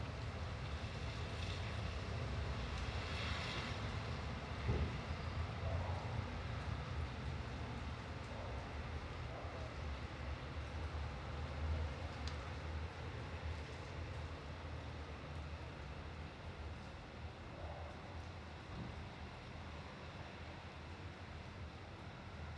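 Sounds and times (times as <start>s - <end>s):
rain in Italy: 0.0s - 22.5s.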